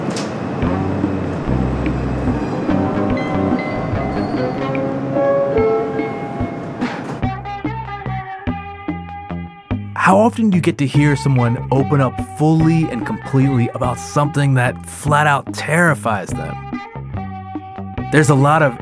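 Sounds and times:
subway train rumbling and clattering: 0:00.0 - 0:07.3
montage music: 0:00.6 - 0:18.8
speech: 0:10.1 - 0:16.7, 0:18.1 - 0:18.8.

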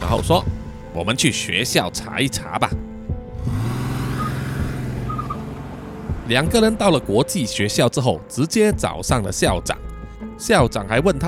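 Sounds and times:
speech: 0:00.1 - 0:02.9, 0:06.3 - 0:11.2
car engine starting and idling: 0:00.6 - 0:07.8.

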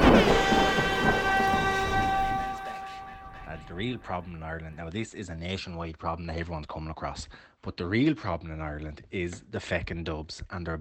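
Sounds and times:
heavy rain pouring: 0:00.0 - 0:03.4
low rumble of thunder: 0:00.0 - 0:04.1
speech: 0:03.8 - 0:10.7.

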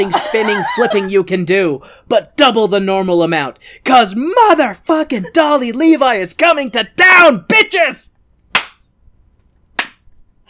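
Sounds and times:
laughter: 0:00.0 - 0:01.3
speech: 0:00.0 - 0:08.1
slow hand clap: 0:08.6 - 0:08.8, 0:09.8 - 0:10.1.

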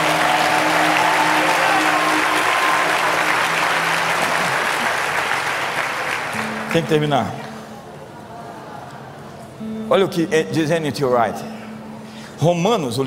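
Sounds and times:
audience applause: 0:00.0 - 0:07.6
speech: 0:06.8 - 0:07.4, 0:09.9 - 0:11.6, 0:12.4 - 0:13.0.

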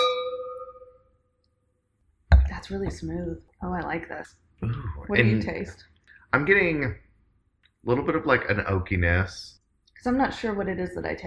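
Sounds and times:
wine glasses clinking in a toast: 0:00.0 - 0:01.0
speech: 0:02.6 - 0:07.0, 0:07.8 - 0:11.2.

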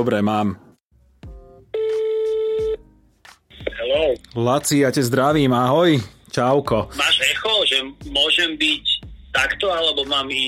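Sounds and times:
speech: 0:00.0 - 0:00.6, 0:03.9 - 0:10.4
telephone ringing: 0:01.8 - 0:02.8.

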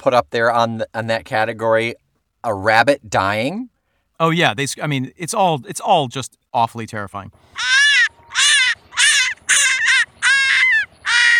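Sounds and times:
speech: 0:00.0 - 0:07.8
vixen screeching: 0:07.5 - 0:11.3.

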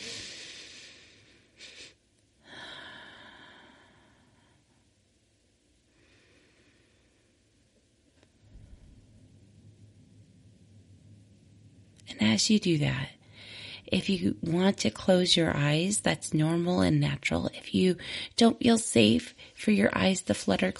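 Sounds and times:
very big deep breath during a guided breathing exercise: 0:00.0 - 0:04.8, 0:05.9 - 0:07.5, 0:13.2 - 0:13.9
quiet low rumble: 0:07.1 - 0:17.0
speech: 0:12.1 - 0:13.2, 0:13.9 - 0:20.7.

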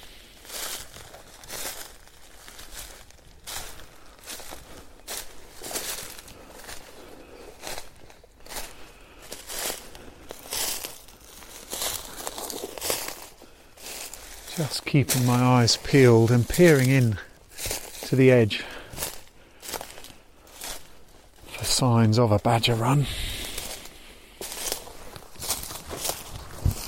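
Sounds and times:
footsteps walking through open beech woodland: 0:00.0 - 0:21.9, 0:22.8 - 0:26.8
speech: 0:14.6 - 0:17.3, 0:18.1 - 0:18.7, 0:21.8 - 0:23.3.

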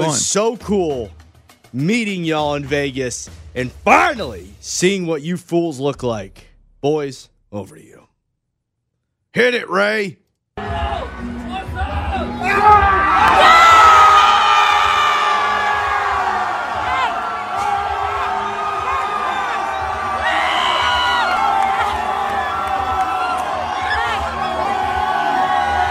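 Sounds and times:
speech: 0:00.0 - 0:08.1, 0:09.3 - 0:11.3
large crowd cheering, whooping and shouting: 0:10.6 - 0:25.8.

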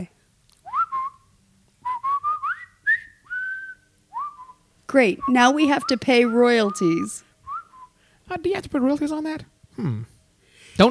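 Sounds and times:
person whistling a bouncy march melody: 0:00.7 - 0:01.2, 0:01.8 - 0:04.6, 0:05.2 - 0:08.0
speech: 0:04.9 - 0:07.3, 0:08.3 - 0:10.1.

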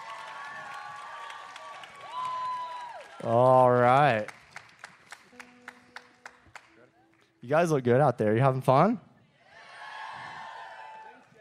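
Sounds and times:
crowd clapping and cheering: 0:00.0 - 0:06.8, 0:09.6 - 0:11.3
speech: 0:03.2 - 0:04.4, 0:07.4 - 0:09.1.

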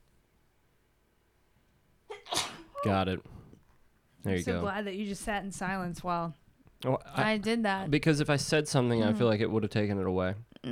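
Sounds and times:
person sneezing: 0:02.1 - 0:02.9
speech: 0:02.8 - 0:03.4, 0:04.2 - 0:10.7.

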